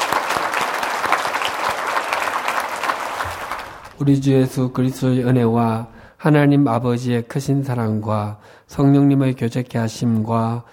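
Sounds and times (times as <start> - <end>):
church congregation applause of thanks: 0.0 - 4.0
speech: 4.0 - 10.7.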